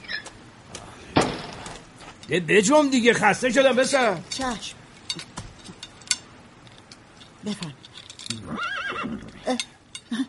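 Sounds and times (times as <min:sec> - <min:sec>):
speech: 0:02.3 - 0:04.8, 0:07.4 - 0:08.7
horse carrying a rider neighing: 0:08.3 - 0:09.5.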